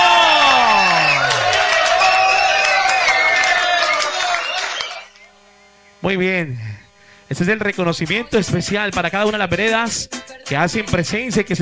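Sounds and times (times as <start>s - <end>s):
crowd applauding: 0.0s - 5.3s
speech: 6.0s - 6.7s, 7.3s - 11.6s.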